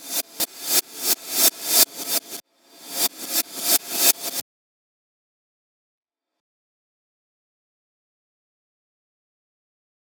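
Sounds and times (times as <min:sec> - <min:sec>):
hi-hat: 0:00.0 - 0:04.4.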